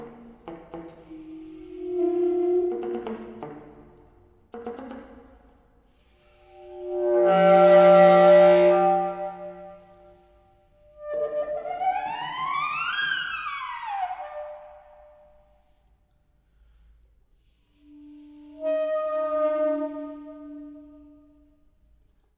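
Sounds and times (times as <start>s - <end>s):
alto saxophone solo: 0.0s - 4.9s, 6.0s - 12.3s, 17.8s - 21.5s.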